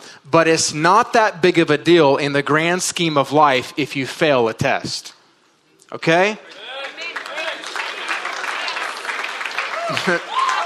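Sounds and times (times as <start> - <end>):
speech: 0.2 - 5.2, 5.9 - 6.7, 9.9 - 10.4
audience clapping: 6.5 - 10.6.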